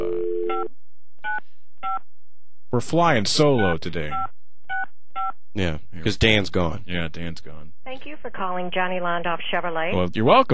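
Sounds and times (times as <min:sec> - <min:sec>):
steady dial tone: 0:00.0 - 0:00.7
speech: 0:02.0 - 0:04.3, 0:05.6 - 0:10.5.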